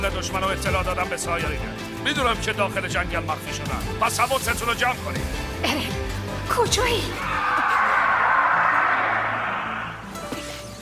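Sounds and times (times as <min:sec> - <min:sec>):
speech: 0:00.1 - 0:07.5
titan screaming: 0:07.1 - 0:10.1.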